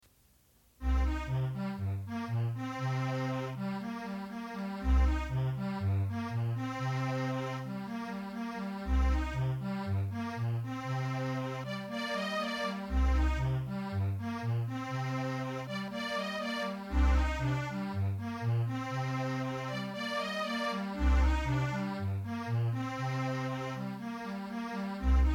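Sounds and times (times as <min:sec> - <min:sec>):
string instruments playing a variation: 0:00.8 - 0:25.3.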